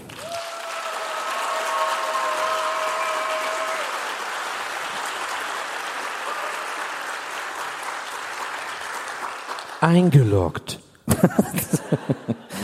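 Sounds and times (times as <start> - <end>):
live audience applause: 0.0 - 10.1
speech: 9.8 - 12.6
laughter: 11.1 - 12.6.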